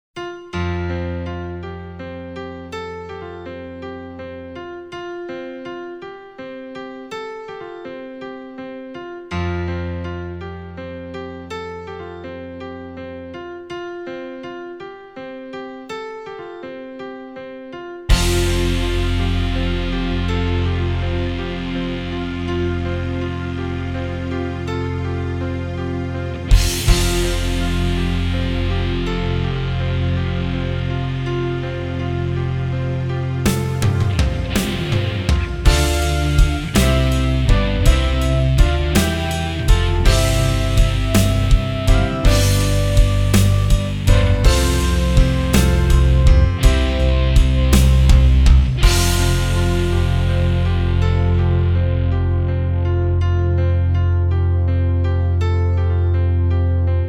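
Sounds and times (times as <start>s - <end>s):
music in the key of F without lead: 0.0s - 57.0s.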